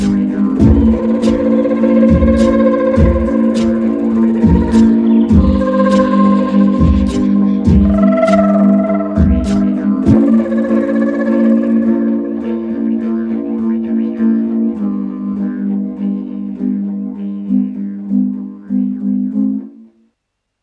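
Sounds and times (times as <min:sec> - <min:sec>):
morning ambience: 0:00.0 - 0:12.9
live didgeridoo playing: 0:00.0 - 0:19.9.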